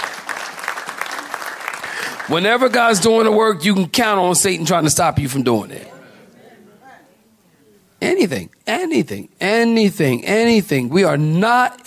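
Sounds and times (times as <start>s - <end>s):
audience clapping hands: 0.0s - 3.3s
speech: 2.3s - 6.0s, 8.3s - 11.8s.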